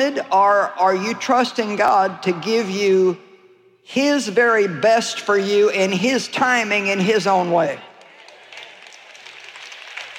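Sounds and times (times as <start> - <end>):
speech: 0.0 - 7.9
audience clapping: 7.8 - 10.1.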